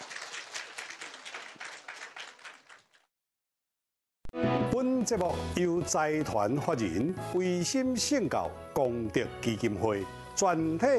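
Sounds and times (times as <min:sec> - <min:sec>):
audience applause: 0:00.0 - 0:03.1
speech: 0:04.8 - 0:10.9.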